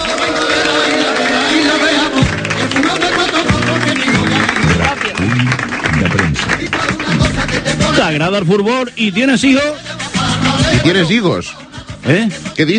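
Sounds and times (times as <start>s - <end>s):
studio audience applause: 0.0s - 8.6s
speech: 8.1s - 10.0s, 10.7s - 12.7s.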